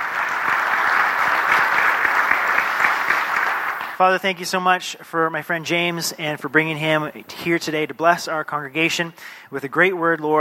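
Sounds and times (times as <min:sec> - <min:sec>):
church congregation clapping for a guest speaker: 0:00.0 - 0:04.2
speech: 0:04.0 - 0:10.3.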